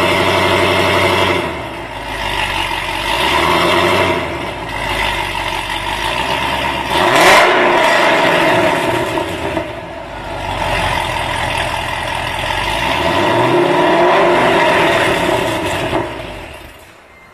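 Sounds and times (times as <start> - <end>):
GTO 6.0L car exhaust with Corsia dual exhausts: 0.0 - 17.1.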